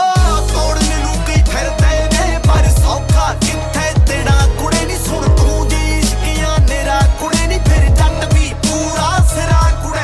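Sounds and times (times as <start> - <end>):
Punjabi beats ringtone: 0.2 - 10.0.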